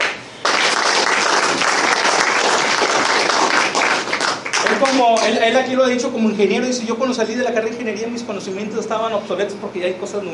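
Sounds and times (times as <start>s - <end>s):
audience applauding: 0.0s - 5.4s
speech: 4.8s - 10.3s.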